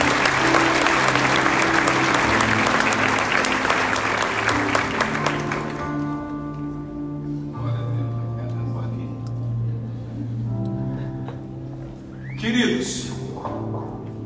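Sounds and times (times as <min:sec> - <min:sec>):
audience applause: 0:00.0 - 0:06.2
sustained organ or keyboard tones: 0:00.0 - 0:13.7.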